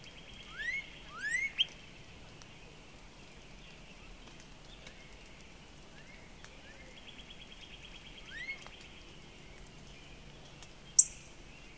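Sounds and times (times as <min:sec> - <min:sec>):
Northern Cardinal song: 0:00.5 - 0:01.7.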